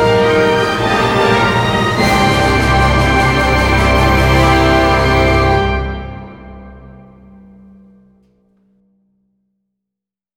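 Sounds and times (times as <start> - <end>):
fanfare: 0.0 - 7.4.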